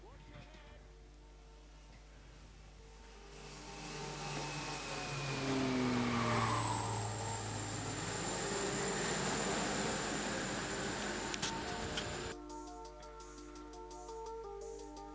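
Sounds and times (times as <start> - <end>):
aircraft flying overhead above people on Arctic ice: 2.4 - 12.4.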